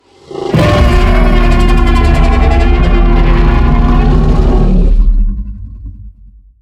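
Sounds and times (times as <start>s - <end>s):
Acrocanthosaurus sound: 0.1s - 6.4s.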